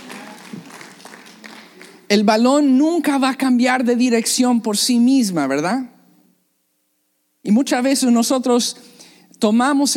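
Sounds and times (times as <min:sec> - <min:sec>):
audience applause: 0:00.0 - 0:02.1
speech: 0:02.1 - 0:05.9, 0:07.5 - 0:09.9.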